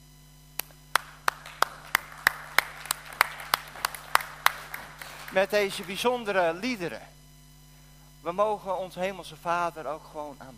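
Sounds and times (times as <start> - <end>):
audience clapping in unison: 0.6 - 6.4
speech: 5.4 - 7.1, 8.2 - 10.5.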